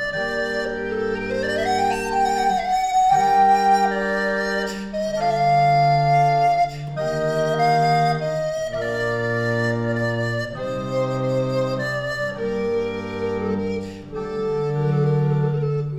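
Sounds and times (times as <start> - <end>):
recorder playing a sarabande in faux bourdon: 0.0 - 15.9.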